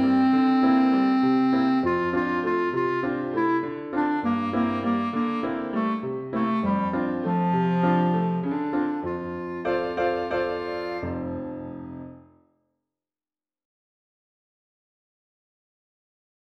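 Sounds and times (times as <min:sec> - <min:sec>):
clarinet: 0:00.0 - 0:12.4
piano: 0:00.0 - 0:12.4.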